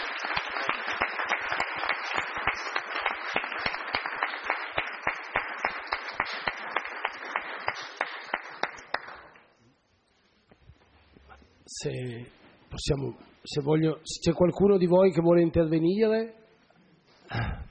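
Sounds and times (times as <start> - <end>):
audience applause: 0.0 - 9.4
speech: 11.8 - 16.4.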